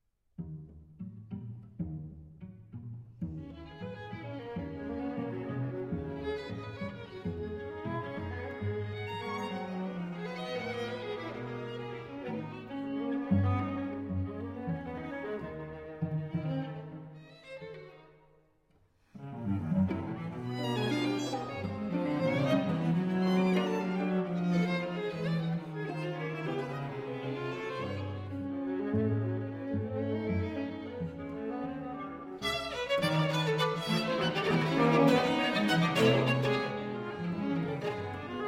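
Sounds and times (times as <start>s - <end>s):
string quartet in B-flat: 0.4s - 18.4s, 19.1s - 38.4s.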